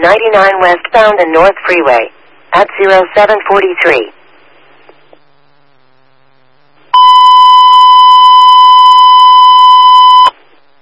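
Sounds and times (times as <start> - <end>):
speech: 0.0 - 4.2
fire dispatch alert tones: 6.9 - 10.4.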